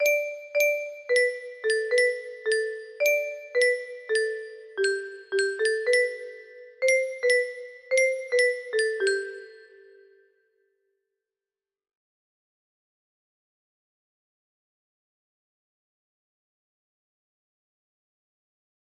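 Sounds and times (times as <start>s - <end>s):
music box: 0.0s - 10.3s.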